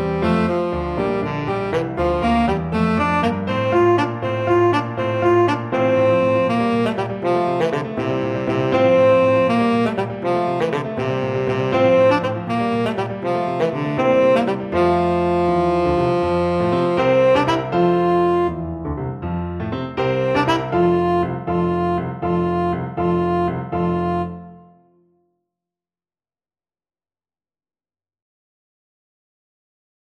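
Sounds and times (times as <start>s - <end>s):
tenor saxophone: 0.0s - 18.6s, 20.0s - 25.0s.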